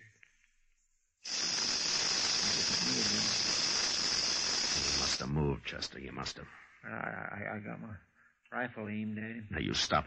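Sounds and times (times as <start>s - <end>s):
rattlesnake rattling and hissing: 1.3s - 5.2s
speech: 5.7s - 10.0s.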